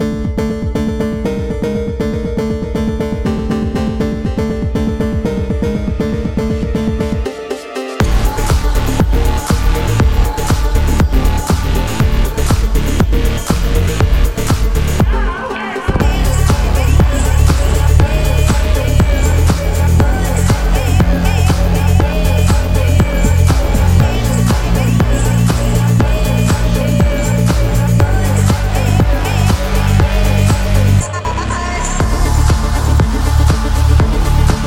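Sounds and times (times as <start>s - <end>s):
phonk music: 0.0s - 34.6s.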